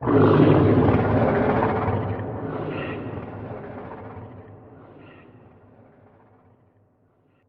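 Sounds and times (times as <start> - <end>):
creature: 0.0 - 5.6.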